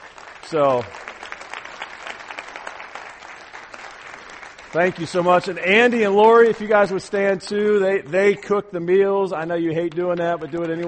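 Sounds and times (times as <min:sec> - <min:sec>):
audience applause for about twenty women asked to stand: 0:00.0 - 0:06.8, 0:09.8 - 0:10.8
speech: 0:00.5 - 0:01.0, 0:04.7 - 0:10.8.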